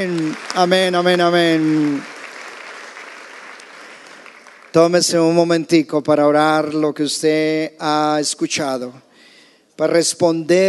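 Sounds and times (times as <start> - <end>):
speech: 0.0 - 2.1, 4.7 - 9.1, 9.8 - 10.6
church audience applauding in worship: 0.0 - 5.1.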